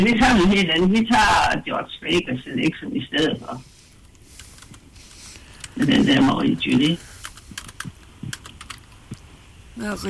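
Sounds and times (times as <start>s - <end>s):
speech: 0.0s - 3.7s, 5.8s - 7.1s, 9.8s - 10.0s
computer keyboard typing: 6.7s - 8.9s.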